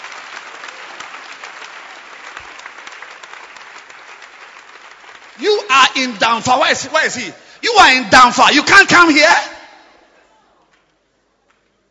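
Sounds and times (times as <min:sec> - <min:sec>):
audience applause for a man: 0:00.0 - 0:06.7
speech: 0:05.7 - 0:09.6.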